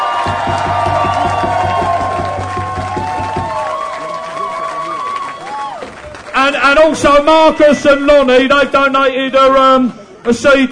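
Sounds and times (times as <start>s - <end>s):
big round of applause: 0.0s - 6.8s
speech: 0.3s - 1.0s, 6.5s - 10.6s.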